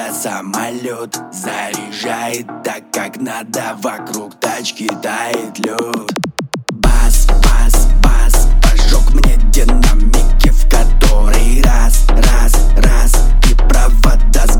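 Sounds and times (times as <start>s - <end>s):
29-33Hz bass tone: 6.8s - 14.5s.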